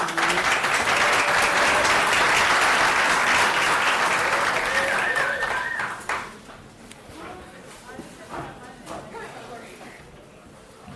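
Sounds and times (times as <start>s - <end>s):
audience applause: 0.0s - 6.4s.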